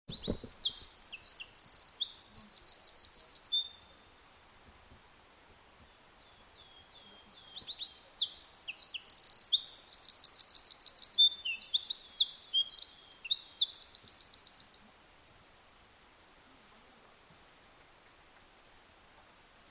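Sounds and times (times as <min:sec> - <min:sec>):
Eurasian wren song: 0:00.1 - 0:04.2, 0:06.2 - 0:15.0.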